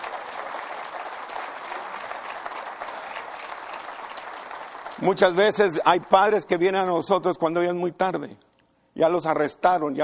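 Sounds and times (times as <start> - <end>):
audience applause: 0.0 - 5.7
speech: 5.0 - 8.4, 9.0 - 10.0.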